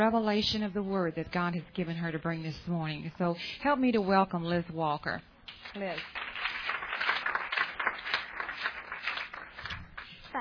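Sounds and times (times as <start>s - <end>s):
speech: 0.0s - 6.2s
audience hand clapping: 5.5s - 10.3s.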